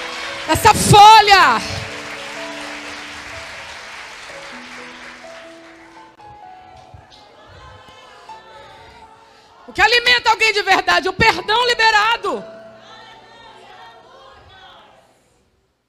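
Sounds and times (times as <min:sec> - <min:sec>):
audience applause: 0:00.0 - 0:06.2
speech: 0:00.5 - 0:01.8, 0:10.2 - 0:12.6.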